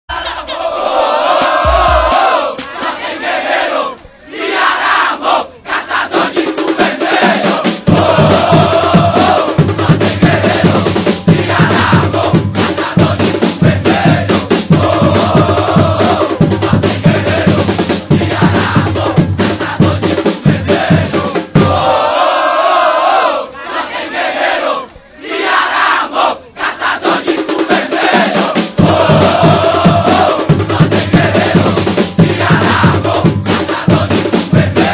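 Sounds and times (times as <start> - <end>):
fan group drums: 0.1 - 34.9.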